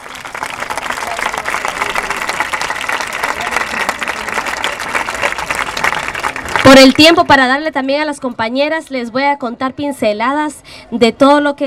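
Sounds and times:
audience applauding: 0.0s - 7.2s
speech: 6.7s - 11.6s.

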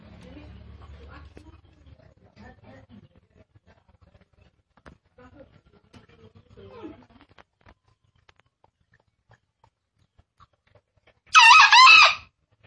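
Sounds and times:
green junglefowl crowing: 11.3s - 12.3s.

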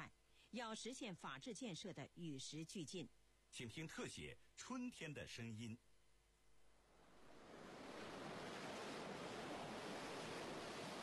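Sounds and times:
speech: 0.5s - 5.9s
roaring waterfall on the Yellow River: 7.3s - 11.0s.

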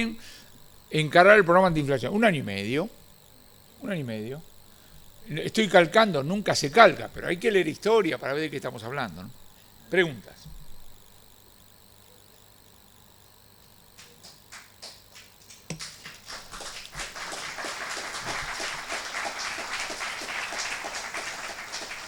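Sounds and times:
speech: 0.0s - 3.0s, 3.8s - 4.5s, 5.3s - 10.6s
audience applause at a conference: 14.0s - 22.0s.

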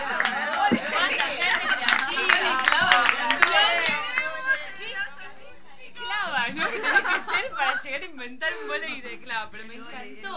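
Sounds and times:
scattered hand claps: 0.0s - 4.6s
laughter: 0.0s - 5.0s, 6.3s - 8.7s
crowd chattering and cheering: 0.0s - 5.5s.

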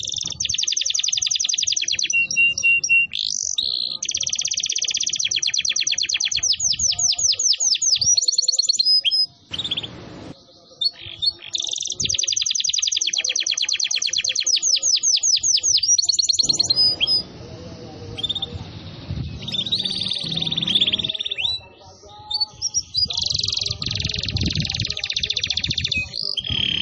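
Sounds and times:
canary song: 0.0s - 26.7s.

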